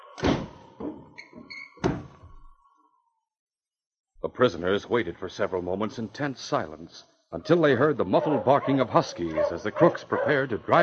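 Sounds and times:
woodshed door being shut: 0.2s - 2.3s
speech: 4.3s - 10.8s.

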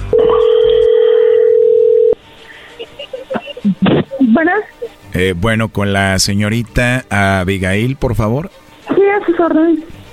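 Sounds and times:
telephone call line tone connecting: 0.0s - 2.2s
speech: 4.4s - 8.6s, 9.4s - 9.9s.

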